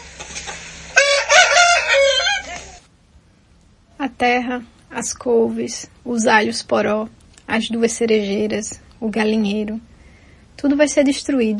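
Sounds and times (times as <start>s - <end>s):
rooster kept among chickens, ducks and pigeons crowing: 0.9s - 2.9s
speech: 4.2s - 9.9s, 10.6s - 11.5s.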